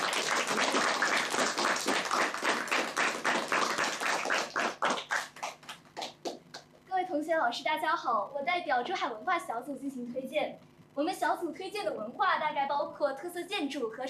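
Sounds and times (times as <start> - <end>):
audience applause: 0.0 - 6.4
speech: 7.4 - 14.0.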